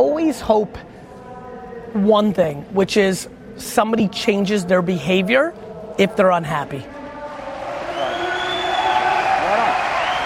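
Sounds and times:
speech: 0.0 - 1.0, 1.9 - 7.0
cheers and voices: 6.9 - 10.2
audience applause: 7.6 - 10.2.

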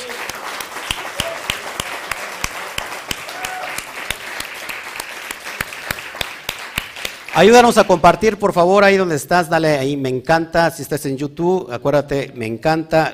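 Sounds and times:
audience applause: 0.0 - 8.0
speech: 7.4 - 13.1.

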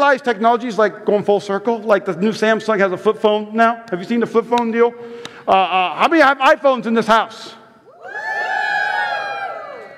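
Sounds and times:
speech: 0.1 - 7.6
audience whooping and cheering: 7.9 - 9.9.

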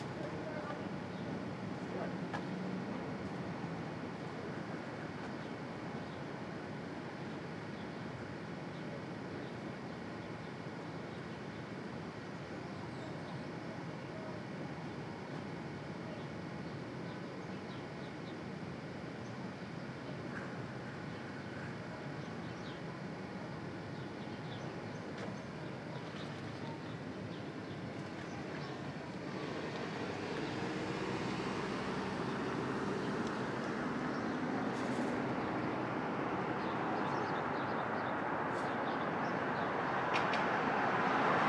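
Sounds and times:
street traffic rumble at dawn in Brooklyn: 0.0 - 41.4
vehicle passing: 29.3 - 34.2.

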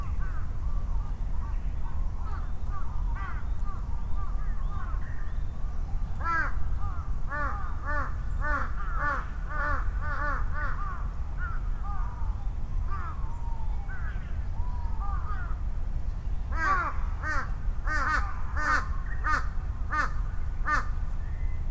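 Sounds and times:
low traffic rumble: 0.0 - 21.6
crows cawing: 2.2 - 5.1, 6.2 - 12.3, 12.9 - 13.2, 15.0 - 15.7, 16.5 - 21.0.

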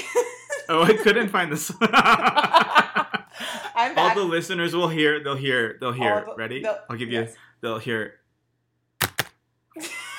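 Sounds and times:
laughter: 0.0 - 3.6
speech: 0.2 - 2.6, 3.8 - 8.2
keyboard clacks: 9.0 - 9.3.

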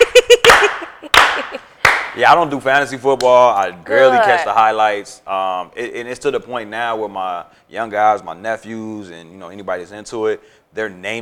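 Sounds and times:
slow clap: 0.0 - 2.3
speech: 2.2 - 11.2.

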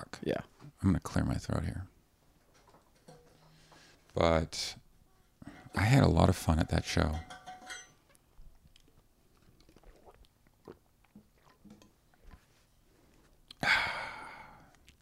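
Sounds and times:
speech: 0.1 - 1.9, 4.2 - 4.8, 5.7 - 7.4
gulps and swallowing from someone drinking cold water: 8.7 - 12.4
loud, breathy exhale of relief: 13.6 - 14.7.

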